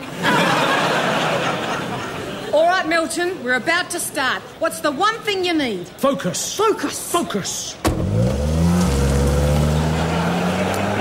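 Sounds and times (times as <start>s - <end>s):
laughter: 0.0s - 2.6s, 9.7s - 11.0s
speech: 2.9s - 8.3s
Ford Focus car driving off: 7.8s - 11.0s.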